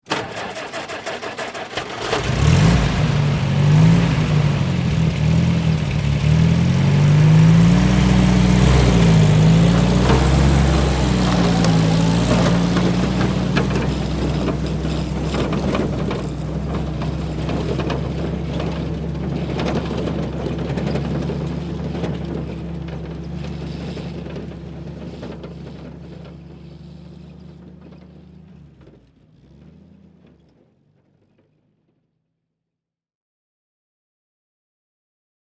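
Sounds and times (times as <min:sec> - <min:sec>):
army jeep engine starting and idling: 0:00.0 - 0:30.2.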